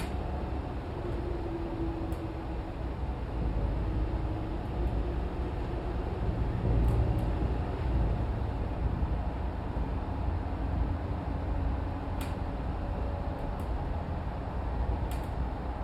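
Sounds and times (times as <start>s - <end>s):
GMC Savana truck interior driving slowly, accelerating and decelerating: 0.0s - 15.8s.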